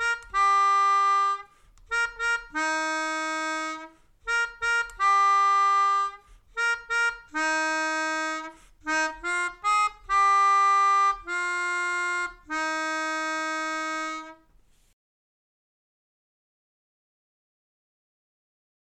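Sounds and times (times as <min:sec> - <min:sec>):
melodica melody: 0:00.0 - 0:14.5.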